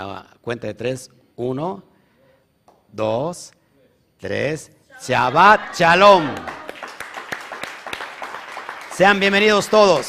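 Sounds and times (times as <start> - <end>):
speech: 0.0 - 1.9, 2.9 - 3.6, 4.2 - 6.5, 9.0 - 10.0
applause: 6.0 - 10.0.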